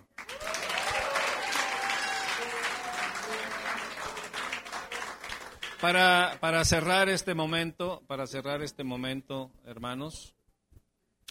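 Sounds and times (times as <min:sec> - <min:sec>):
audience applause: 0:00.0 - 0:06.5
speech: 0:05.8 - 0:10.4.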